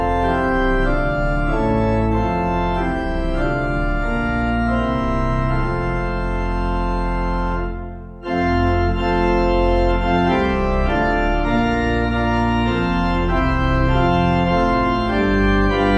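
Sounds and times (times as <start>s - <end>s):
organ: 0.0s - 15.9s.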